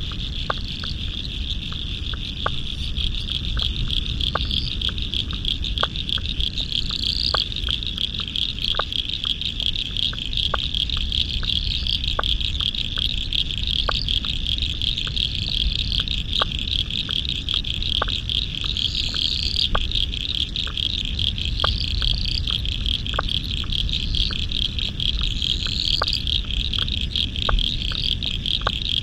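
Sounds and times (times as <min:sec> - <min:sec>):
frog chorus clicking: 0:00.0 - 0:29.0.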